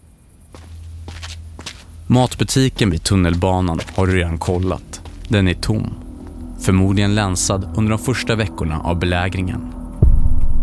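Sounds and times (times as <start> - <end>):
low steady hum: 0.0 - 10.6
footsteps of someone getting up and going out: 0.5 - 6.5
speech: 2.1 - 6.0, 6.6 - 9.8.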